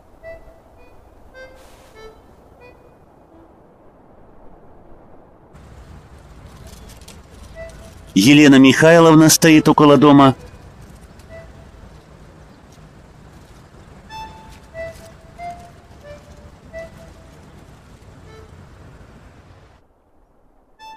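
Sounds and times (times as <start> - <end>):
rough road noise on a dirt road: 0.0 - 4.0, 5.4 - 20.7
car pulling away and driving on a dirt road: 5.6 - 19.8
speech: 8.2 - 10.4.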